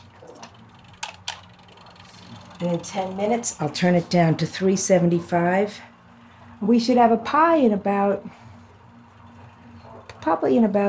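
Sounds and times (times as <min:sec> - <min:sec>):
mechanical kitchen timer being wound: 0:00.0 - 0:04.0
steady low hum: 0:00.0 - 0:10.8
speech: 0:02.6 - 0:05.9, 0:06.6 - 0:08.4, 0:10.3 - 0:10.8.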